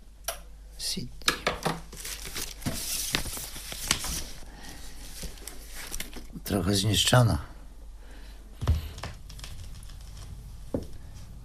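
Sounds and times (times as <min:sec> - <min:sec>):
speech: 0:00.8 - 0:01.4, 0:06.5 - 0:07.5
vinyl record crackling: 0:01.8 - 0:07.3, 0:08.5 - 0:11.4.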